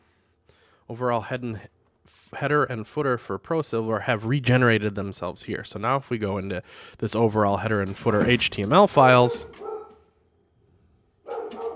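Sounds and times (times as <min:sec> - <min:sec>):
speech: 0:00.9 - 0:09.7
dogs barking: 0:09.2 - 0:10.1, 0:11.2 - 0:11.7.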